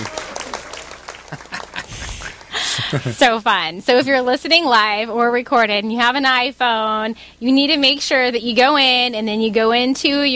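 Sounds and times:
played applause sound effect: 0.0s - 3.2s
laughter: 0.0s - 4.2s
speech: 2.9s - 10.3s.

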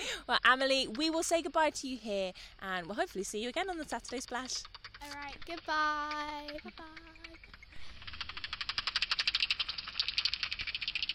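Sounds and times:
speech: 0.3s - 7.2s
bat calls through a bat detector: 3.3s - 11.1s.

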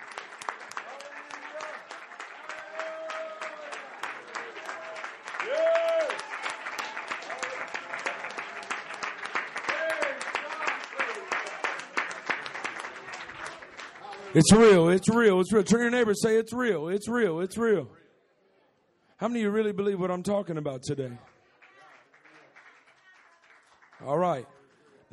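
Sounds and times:
audience clapping hands: 0.0s - 15.9s, 19.8s - 25.1s
speech: 14.3s - 18.0s, 19.2s - 21.3s, 24.3s - 24.5s.

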